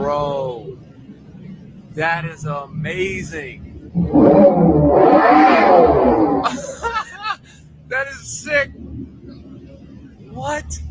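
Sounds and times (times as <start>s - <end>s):
speech: 2.0s - 6.6s
fake engine revving from car speakers: 3.8s - 6.5s
laughter: 6.4s - 7.7s.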